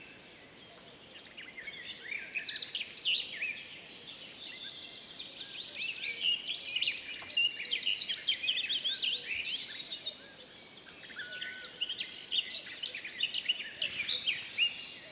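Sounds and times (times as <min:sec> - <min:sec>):
spring birdsong: 0:00.0 - 0:15.1.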